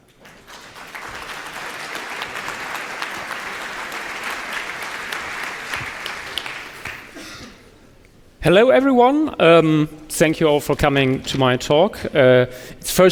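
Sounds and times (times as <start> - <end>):
audience applause welcoming a speaker: 0.0 - 7.2
speech: 8.4 - 13.0.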